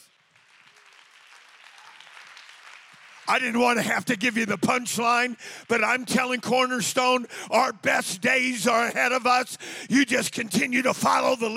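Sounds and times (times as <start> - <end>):
people clapping: 0.0 - 6.5
speech: 3.3 - 11.5.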